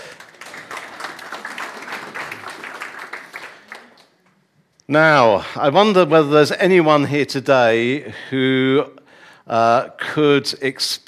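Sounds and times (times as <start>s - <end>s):
crowd applauding: 0.0s - 4.2s
speech: 4.9s - 11.0s.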